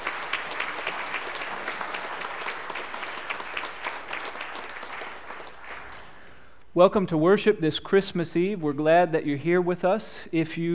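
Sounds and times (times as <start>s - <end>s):
audience applause: 0.0s - 6.0s
speech: 6.8s - 10.7s.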